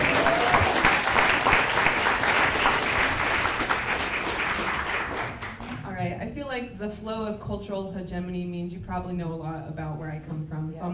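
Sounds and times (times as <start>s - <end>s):
audience clapping: 0.0s - 5.9s
speech: 6.8s - 10.9s.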